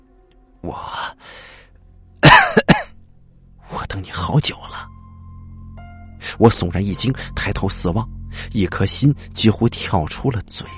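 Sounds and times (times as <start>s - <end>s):
speech: 0.6s - 0.9s, 4.0s - 4.9s, 6.4s - 10.7s
elderly person coughing violently: 2.2s - 2.9s.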